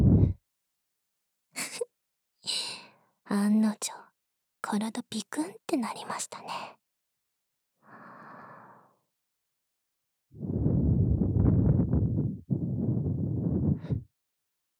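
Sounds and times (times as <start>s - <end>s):
speech: 3.3s - 4.0s, 4.6s - 6.8s
hot breath blown into the ear: 10.4s - 14.1s.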